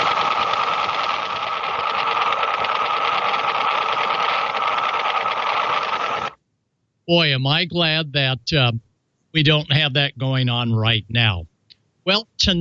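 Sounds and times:
Russian woodpecker radar interference on shortwave: 0:00.0 - 0:06.4
speech: 0:07.1 - 0:12.5.

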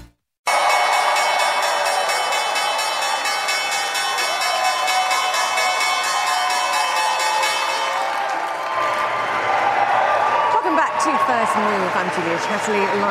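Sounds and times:
stock exchange opening electric bell ringing: 0:00.5 - 0:08.4
crowd applause and cheering: 0:00.5 - 0:13.0
speech: 0:12.2 - 0:13.0.

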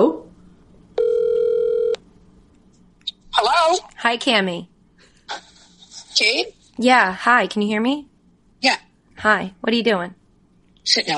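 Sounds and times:
telephone call ringing out: 0:01.0 - 0:02.0
speech: 0:04.1 - 0:04.7, 0:06.2 - 0:10.2, 0:10.8 - 0:11.1.

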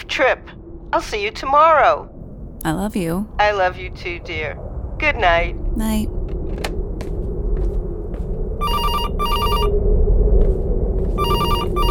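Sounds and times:
steady low rumble: 0:00.1 - 0:11.8
speech: 0:00.2 - 0:06.2
telephone ringing with electronic trill: 0:08.6 - 0:09.7, 0:11.2 - 0:11.8.

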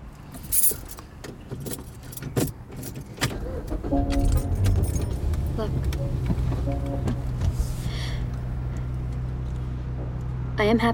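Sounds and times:
keys jangling: 0:00.3 - 0:01.0, 0:01.6 - 0:03.1, 0:04.1 - 0:05.3
car engine starting: 0:00.3 - 0:10.7
speech: 0:05.6 - 0:07.3, 0:10.6 - 0:10.9.

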